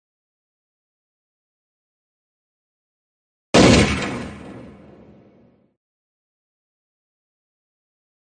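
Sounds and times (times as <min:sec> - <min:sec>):
pistol gunshot echoing through the mountains: 0:03.6 - 0:05.3.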